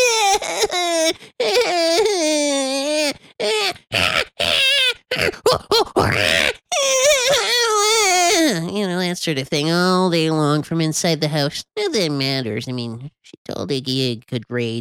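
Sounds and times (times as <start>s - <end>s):
person imitating baby creature shrieks: 0.0s - 8.6s
speech: 9.3s - 14.7s.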